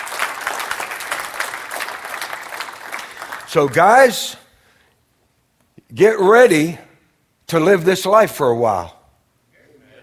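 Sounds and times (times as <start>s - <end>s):
hand clapping in worship: 0.0s - 3.9s
speech: 3.5s - 4.4s, 5.9s - 6.9s, 7.5s - 9.0s.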